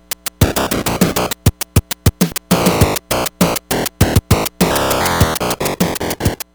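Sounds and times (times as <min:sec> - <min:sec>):
distorted chiptune game music on NES TIA sound chip: 0:00.4 - 0:01.4, 0:02.6 - 0:06.4.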